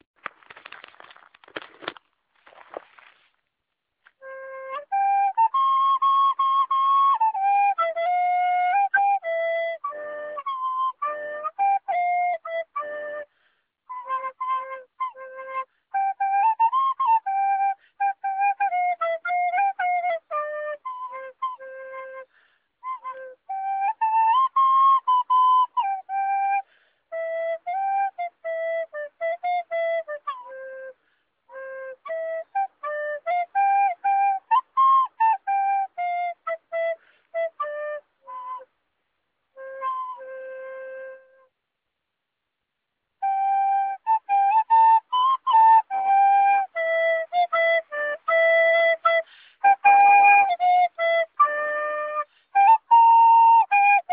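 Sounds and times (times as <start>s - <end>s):
flute: 4.0s - 38.8s, 39.5s - 41.6s, 43.1s - 54.1s.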